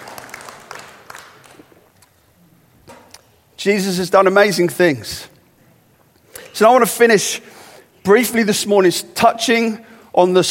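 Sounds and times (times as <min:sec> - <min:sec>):
round of applause: 0:00.0 - 0:01.9
speech: 0:03.6 - 0:05.3, 0:06.6 - 0:10.4.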